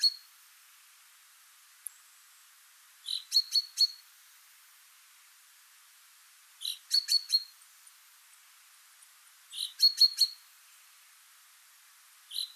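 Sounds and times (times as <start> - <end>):
common chaffinch Fringilla coelebs calling: 0.0 - 0.4, 1.8 - 4.1, 6.6 - 10.8, 12.3 - 12.5.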